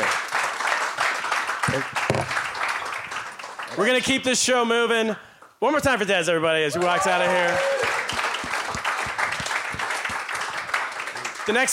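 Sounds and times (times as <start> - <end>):
audience applause: 0.0 - 3.8, 6.7 - 11.7
speech: 1.7 - 2.5, 3.7 - 7.8, 11.5 - 11.7.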